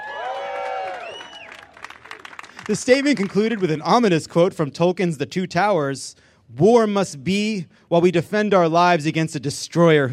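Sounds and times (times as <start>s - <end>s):
audience cheering: 0.0s - 3.9s
speech: 2.7s - 10.1s.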